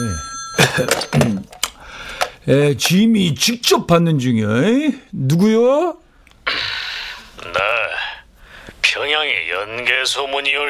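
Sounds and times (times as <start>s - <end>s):
speech: 0.0s - 1.6s, 2.4s - 6.6s, 9.0s - 10.6s
telephone ringing: 0.0s - 2.4s.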